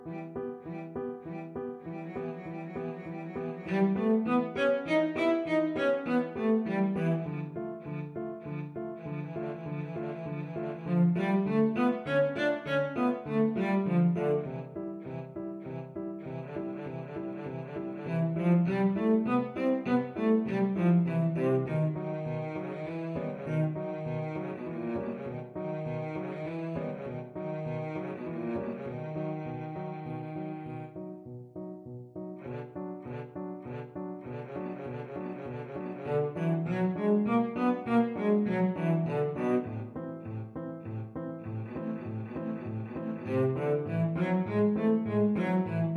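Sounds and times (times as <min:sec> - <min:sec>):
violin and cello duet: 0:00.1 - 0:31.1, 0:32.5 - 0:45.9.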